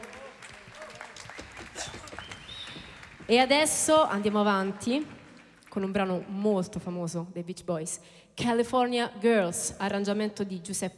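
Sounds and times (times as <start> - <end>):
audience applauding for the saxophonist: 0.0 - 6.0
speech: 3.3 - 5.2, 5.8 - 10.9.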